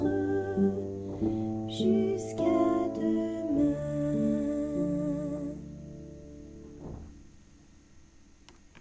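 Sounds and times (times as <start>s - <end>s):
soprano singing: 0.0s - 6.5s.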